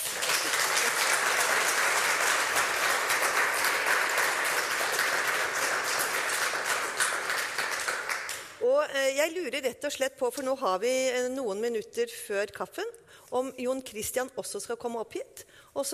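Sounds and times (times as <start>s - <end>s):
audience applause: 0.0s - 8.6s
speech: 8.8s - 15.9s.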